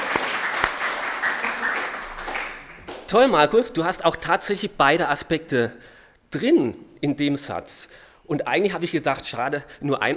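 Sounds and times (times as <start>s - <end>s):
audience applause: 0.0s - 3.1s
speech: 3.1s - 10.1s.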